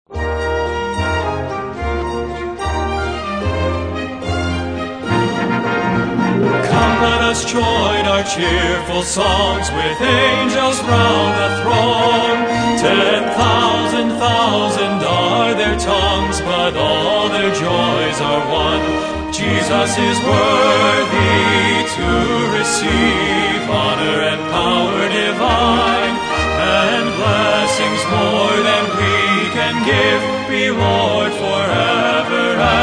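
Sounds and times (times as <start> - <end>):
orchestra playing: 0.1 - 32.8
singers: 6.6 - 32.8.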